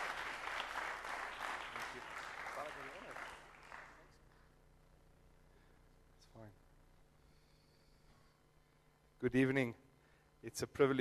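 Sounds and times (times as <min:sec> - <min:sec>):
church audience applauding: 0:00.0 - 0:04.2
speech: 0:09.2 - 0:09.8, 0:10.4 - 0:10.9.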